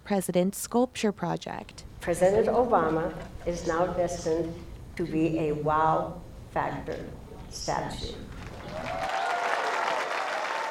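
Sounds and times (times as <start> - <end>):
speech: 0.1 - 9.0
crowd standing ovation as a bronze Obama statue is unveiled: 8.4 - 10.6.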